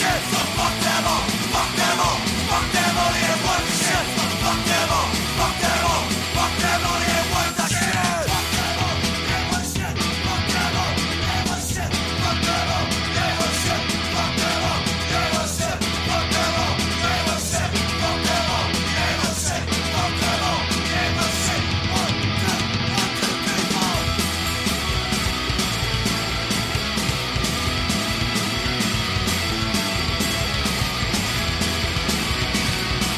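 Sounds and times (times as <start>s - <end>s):
driving prominent bass line: 0.0s - 7.6s, 8.3s - 33.1s
shouted vocals: 0.0s - 24.2s
dense distorted guitars: 0.0s - 33.1s
heavy rock song: 0.0s - 33.1s
pounding drums: 0.0s - 33.1s.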